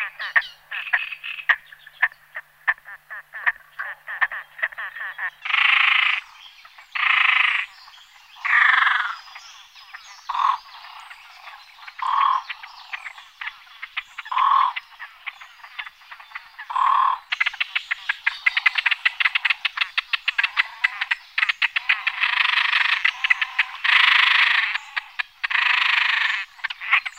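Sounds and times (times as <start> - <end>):
great crested grebe calling: 0.0 - 27.1.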